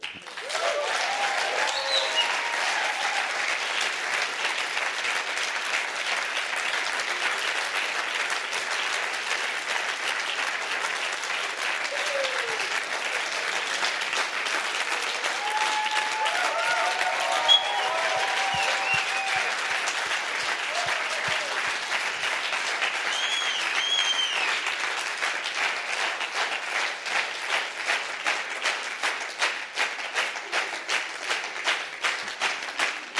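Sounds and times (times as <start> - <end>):
large crowd applauding: 0.0 - 33.1
faint voices and whoops: 0.4 - 3.5, 11.8 - 12.8, 15.1 - 19.7, 20.6 - 21.7.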